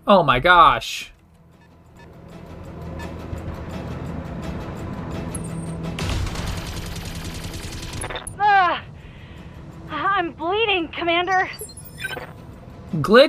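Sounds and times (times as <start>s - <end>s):
speech: 0.1s - 1.1s, 10.2s - 12.3s, 12.9s - 13.2s
gunfire from weapons in a video game: 6.0s - 8.3s
high warbling electronic chirp: 11.2s - 12.4s.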